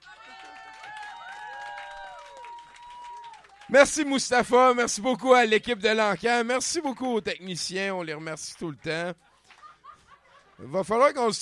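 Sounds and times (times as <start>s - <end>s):
excited crowd voices and whoops: 0.0s - 3.7s
audience applause: 0.0s - 4.2s
speech: 3.7s - 9.3s, 10.6s - 11.4s
laughter: 8.3s - 11.1s.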